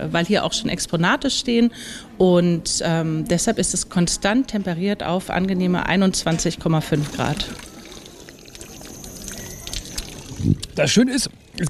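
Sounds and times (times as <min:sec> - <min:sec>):
speech: 0:00.0 - 0:07.7, 0:10.4 - 0:11.6
water running from a free public drinking water dispenser: 0:06.7 - 0:11.6.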